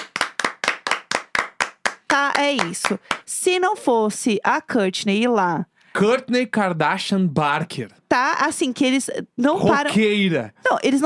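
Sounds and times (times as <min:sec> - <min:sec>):
hand clapping: 0:00.0 - 0:03.3
speech: 0:02.2 - 0:11.0.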